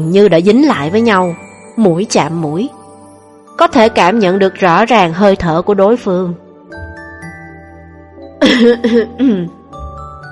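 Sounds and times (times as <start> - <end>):
speech: 0.0 - 2.8, 3.6 - 6.4, 8.4 - 9.6
two people giving harsh voiced dry coughs: 8.4 - 9.5
throat clearing: 8.4 - 9.6.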